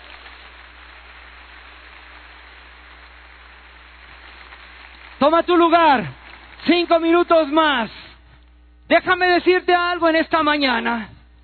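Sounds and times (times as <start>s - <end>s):
crowd applauding: 0.0s - 7.7s
speech: 5.2s - 8.0s, 8.9s - 11.2s.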